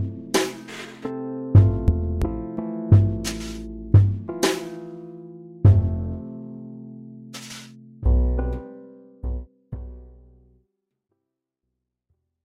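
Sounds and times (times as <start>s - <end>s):
jazzy music: 0.0s - 6.4s, 7.4s - 10.4s.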